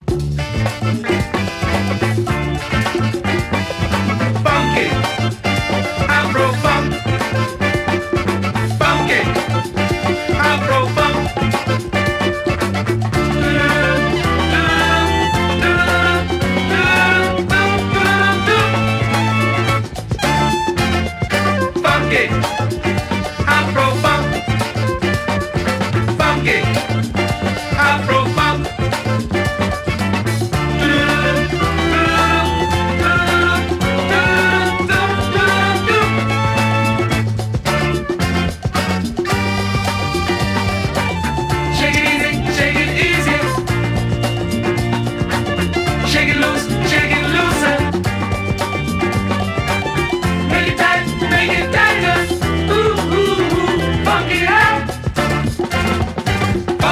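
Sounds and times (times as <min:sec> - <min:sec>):
afro funk music: 0:00.0 - 0:56.8.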